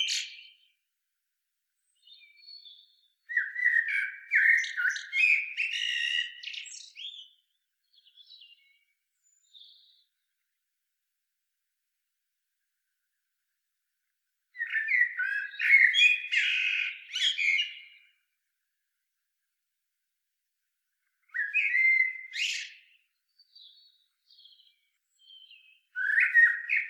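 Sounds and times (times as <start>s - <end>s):
common blackbird Turdus merula song: 0.0s - 0.9s, 1.8s - 10.6s, 14.5s - 18.4s, 21.0s - 26.8s.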